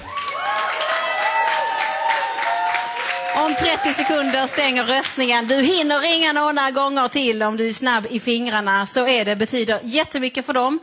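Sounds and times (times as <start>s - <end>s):
audience applause: 0.0s - 5.9s
speech: 3.5s - 10.8s.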